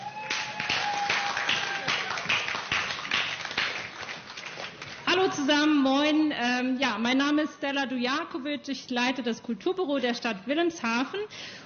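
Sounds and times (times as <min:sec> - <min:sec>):
audience applause: 0:00.0 - 0:05.1
speech: 0:05.4 - 0:11.6.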